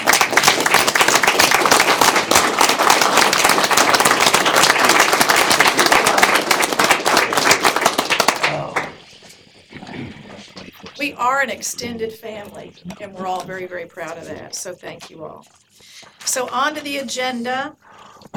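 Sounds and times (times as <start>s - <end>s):
standing ovation applause for port staff at a port commission meeting: 0.0s - 9.0s
speech: 11.2s - 15.6s, 16.4s - 17.9s.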